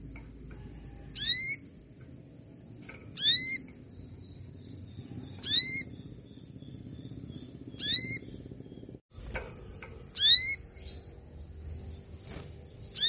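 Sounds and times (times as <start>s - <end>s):
Belgian canary calls: 0.0s - 2.1s, 3.0s - 9.0s, 9.8s - 11.2s, 12.3s - 13.0s.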